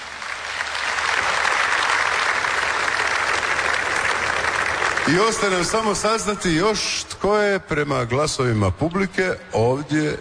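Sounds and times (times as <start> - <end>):
audience applause at an outdoor award ceremony on a town square in Požega: 0.0 - 6.3
speech: 5.1 - 10.1.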